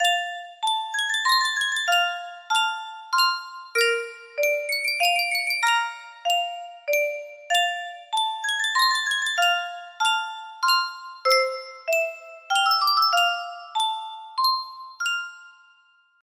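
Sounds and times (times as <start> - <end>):
yunsheng music box: 0.0 - 16.2.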